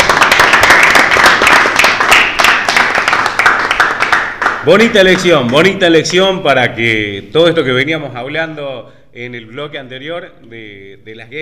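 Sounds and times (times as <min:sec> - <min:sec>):
applause: 0:00.0 - 0:05.5
speech: 0:04.7 - 0:11.3.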